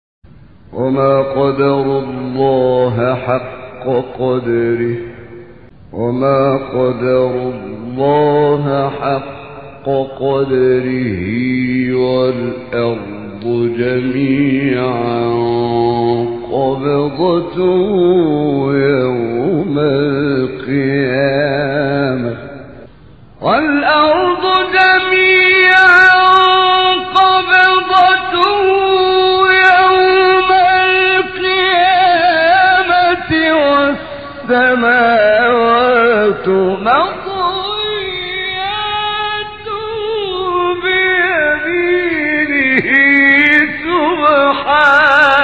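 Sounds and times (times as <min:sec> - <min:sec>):
recitation of a Quran verse: 0:00.7 - 0:45.4.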